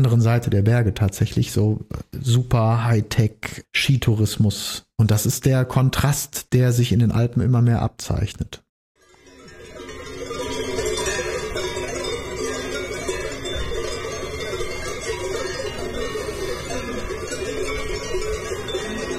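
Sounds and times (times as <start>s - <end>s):
speech: 0.0s - 8.6s
bells ringing: 9.0s - 19.1s.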